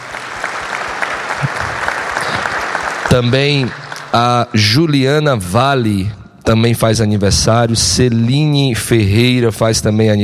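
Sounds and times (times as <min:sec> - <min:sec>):
audience applause at a couples' camp gathering: 0:00.0 - 0:04.4
speech: 0:03.1 - 0:10.2.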